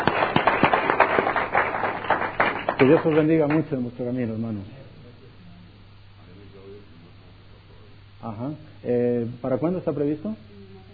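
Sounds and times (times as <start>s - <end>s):
audience applause: 0.0s - 3.7s
speech: 2.8s - 4.8s, 8.2s - 10.5s.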